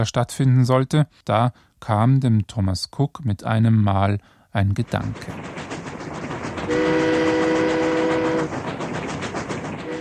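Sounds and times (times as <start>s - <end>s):
speech: 0.0s - 5.6s
train rumbling and clacking on rails: 4.6s - 10.0s
train horn blast: 6.7s - 8.6s, 9.8s - 10.0s.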